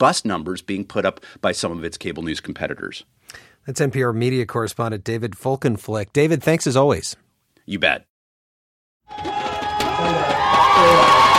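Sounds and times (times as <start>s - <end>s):
speech: 0.0s - 8.1s
crowd cheering in Taiwan: 9.1s - 11.3s.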